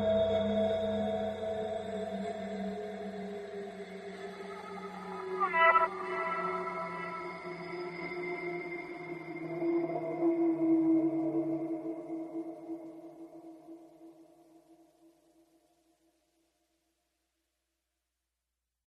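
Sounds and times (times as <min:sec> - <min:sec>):
ambient music mix: 0:00.0 - 0:13.4.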